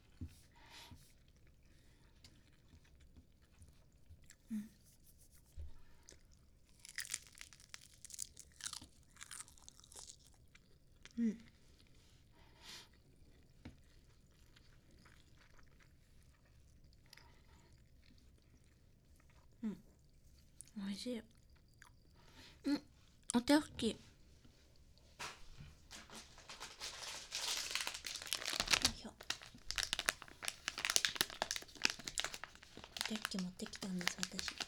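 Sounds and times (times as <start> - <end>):
soft moist chewing of rice: 0.0 - 4.8, 5.8 - 20.7, 21.3 - 22.4, 25.8 - 34.6
dry seaweed wrapping tearing: 6.7 - 9.8, 25.2 - 34.6
speech: 21.0 - 21.3, 23.4 - 24.1
crinkly high-pitched rustle: 25.2 - 34.6.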